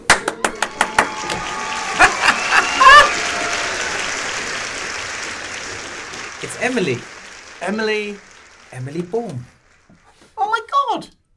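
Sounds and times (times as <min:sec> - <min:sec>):
audience clapping: 0:00.0 - 0:10.6
high wavering whoop: 0:00.3 - 0:04.8
laughter: 0:00.5 - 0:09.4
speech: 0:06.6 - 0:09.5.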